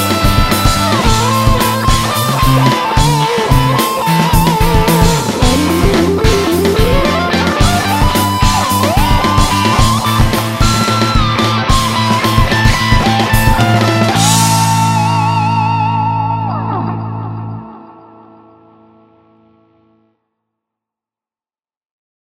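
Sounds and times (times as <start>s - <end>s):
organ: 0.0s - 20.0s.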